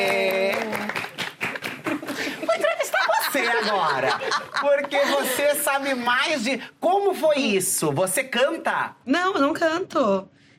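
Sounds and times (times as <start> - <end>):
clapping for a guest: 0.0 - 3.0
laughter: 0.0 - 6.0
speech: 3.6 - 10.4.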